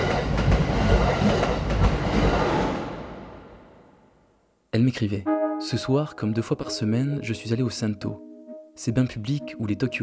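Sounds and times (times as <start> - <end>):
metro train carriage rattling along the rails: 0.0 - 3.0
speech: 4.8 - 10.0.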